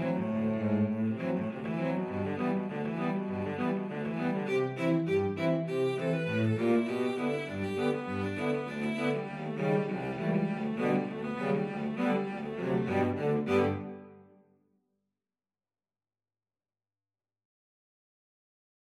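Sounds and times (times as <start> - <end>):
cello quartet: 0.0 - 14.3.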